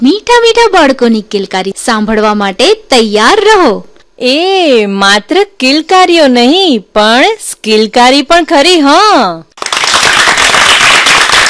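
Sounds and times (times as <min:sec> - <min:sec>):
speech: 0:00.0 - 0:09.8
audience clapping: 0:09.6 - 0:11.4.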